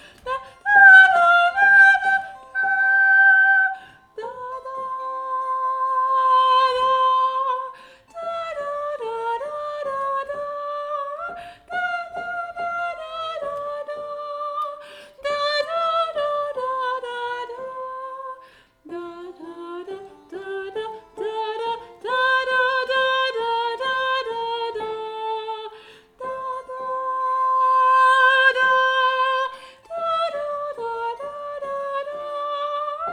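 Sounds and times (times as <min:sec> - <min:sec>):
tenor playing a gavotte: 0:00.0 - 0:33.1.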